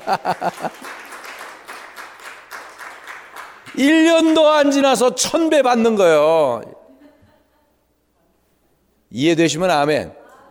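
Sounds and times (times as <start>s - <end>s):
speech: 0.0s - 1.0s, 3.8s - 6.8s, 9.2s - 10.2s
audience applause: 0.0s - 4.4s.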